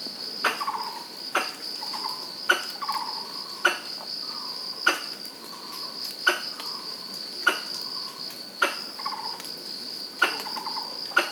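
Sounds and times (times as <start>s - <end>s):
Pallas's squirrel calls: 0.4s - 4.0s, 4.8s - 5.2s, 6.2s - 6.8s, 7.4s - 8.0s, 8.6s - 9.5s, 10.2s - 11.3s.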